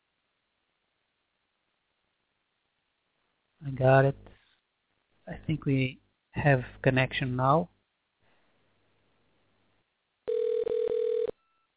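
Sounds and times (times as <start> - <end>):
speech: 3.6 - 4.3, 5.3 - 7.7
outgoing phone call ringing tone: 10.3 - 11.6.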